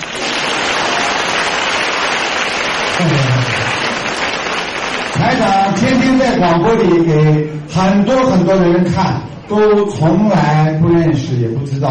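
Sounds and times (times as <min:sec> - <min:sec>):
audience applause: 0:00.0 - 0:05.9
speech: 0:05.4 - 0:11.8.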